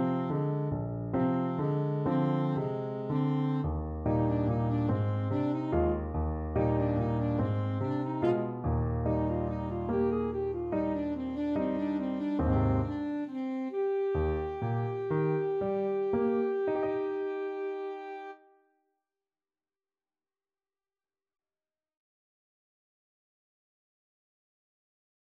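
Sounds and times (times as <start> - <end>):
alto saxophone duet: 0.0 - 18.5.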